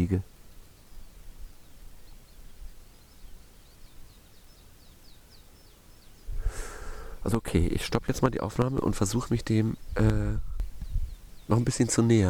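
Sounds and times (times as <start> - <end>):
speech: 0.0 - 0.3, 7.2 - 10.5, 11.5 - 12.2
flock of canaries singing in the mountains: 0.0 - 12.2.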